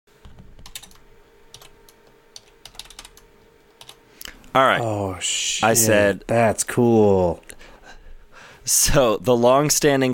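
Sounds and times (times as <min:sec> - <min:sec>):
computer keyboard typing: 0:00.2 - 0:04.0
speech: 0:04.6 - 0:07.6, 0:08.7 - 0:10.1.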